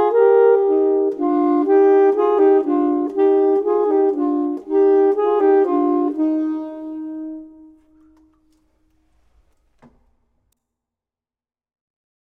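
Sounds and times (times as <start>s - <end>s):
clarinet: 0.0s - 8.7s
saxophone: 0.0s - 9.4s.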